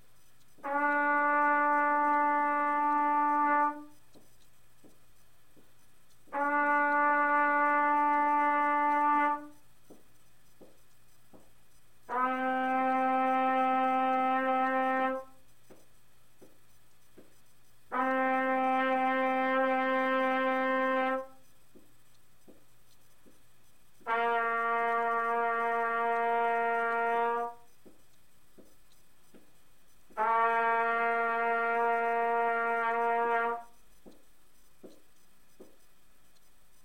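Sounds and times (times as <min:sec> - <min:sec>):
trumpet playing first five steps: 0:00.2 - 0:04.4, 0:06.2 - 0:09.7, 0:12.0 - 0:15.5, 0:17.9 - 0:21.6, 0:24.0 - 0:27.8, 0:30.0 - 0:33.8.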